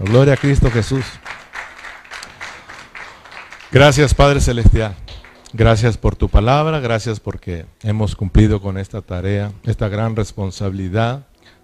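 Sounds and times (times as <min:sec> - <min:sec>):
speech: 0:00.0 - 0:01.3, 0:03.7 - 0:11.3
audience applause: 0:00.0 - 0:05.6.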